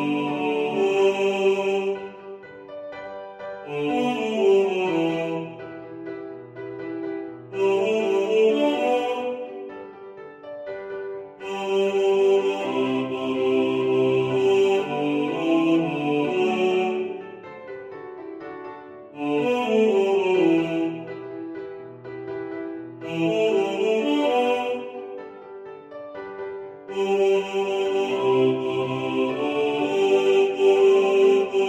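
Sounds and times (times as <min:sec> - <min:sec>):
male choir singing: 0:00.0 - 0:02.4, 0:03.6 - 0:06.0, 0:07.5 - 0:09.8, 0:11.4 - 0:17.4, 0:19.2 - 0:21.3, 0:23.0 - 0:25.2, 0:26.9 - 0:31.6
piano: 0:00.0 - 0:31.6.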